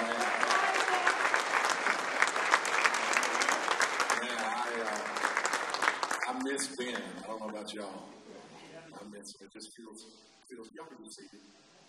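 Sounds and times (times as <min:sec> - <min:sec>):
audience hand clapping: 0:00.0 - 0:07.6
speech: 0:06.6 - 0:08.2, 0:09.1 - 0:11.7.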